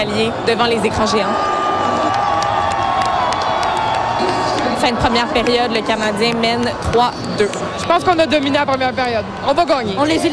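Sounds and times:
speech: 0.0s - 2.2s, 4.2s - 10.3s
hockey fans cheering at the Centre Bell: 0.0s - 9.8s.

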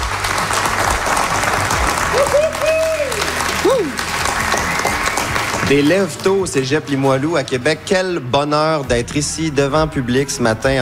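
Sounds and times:
live audience applause: 0.0s - 6.8s
speech: 3.7s - 4.0s, 5.7s - 10.8s.

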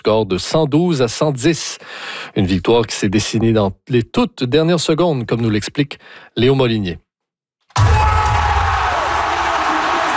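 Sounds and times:
speech: 0.0s - 7.0s
huge arena crowd cheering after winning shot: 7.8s - 10.1s.

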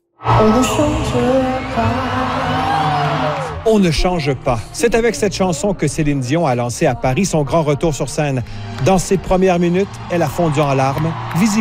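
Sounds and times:
speech: 0.4s - 2.0s, 3.7s - 11.6s
concert crowd applauding and cheering the singer: 0.4s - 3.9s, 8.8s - 11.6s.

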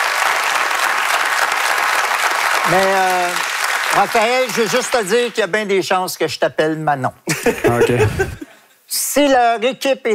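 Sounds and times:
audience applauding a newly introduced director: 0.0s - 5.6s
speech: 2.7s - 10.1s.

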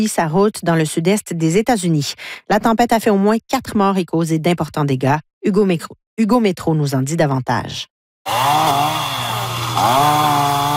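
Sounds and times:
speech: 0.0s - 9.2s, 9.8s - 10.7s
chainsaw cutting fallen trees: 8.3s - 10.7s.

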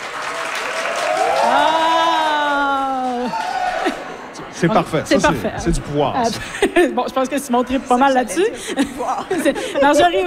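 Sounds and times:
audience applauding on cue: 0.0s - 4.2s
laughter: 1.5s - 4.8s, 6.2s - 7.2s, 8.2s - 10.2s
speech: 4.6s - 10.2s.

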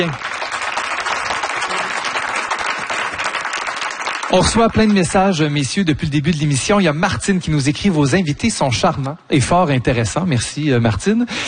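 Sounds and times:
speech: 0.0s - 0.3s, 4.3s - 11.4s
audience applause: 0.0s - 5.3s.

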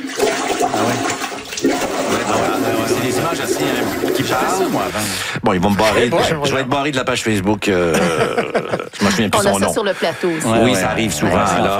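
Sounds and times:
toilet water surging back up during heavy rain: 0.0s - 5.2s
speech: 0.8s - 1.2s, 2.3s - 11.7s
laughter: 7.7s - 11.7s.

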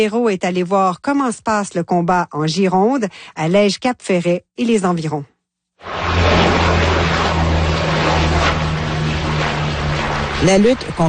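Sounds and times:
speech: 0.0s - 6.5s, 10.4s - 11.0s
Canadair water-bomber aircraft flying overhead: 5.8s - 11.0s.

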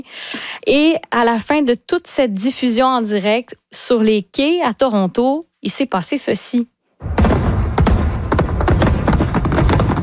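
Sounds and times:
speech: 0.0s - 6.7s
fireworks exploding over the Toronto waterfront: 7.0s - 10.0s.

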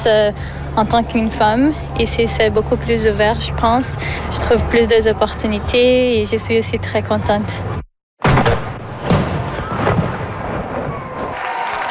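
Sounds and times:
speech: 0.0s - 7.8s
Canadian Armed Forces cannon salute firing: 8.2s - 11.4s.

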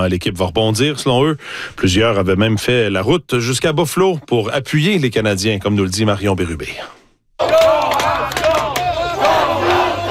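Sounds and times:
speech: 0.0s - 7.8s
crowd of hockey fans cheering and shouting: 7.4s - 10.0s.

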